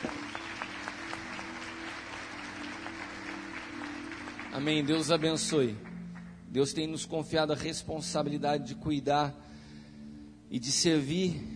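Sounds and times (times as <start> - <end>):
audience applause: 0.0 - 6.0
speech: 4.6 - 5.9, 6.5 - 9.6, 10.5 - 11.5.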